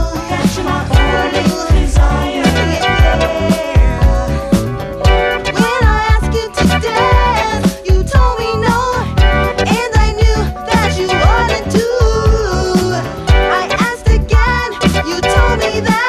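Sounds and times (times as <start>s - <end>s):
lower vocal mix: 0.0s - 16.0s.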